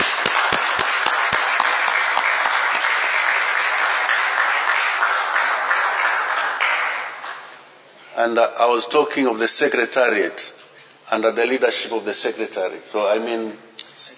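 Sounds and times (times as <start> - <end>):
audience applause: 0.0 - 7.6
speech: 8.2 - 14.1.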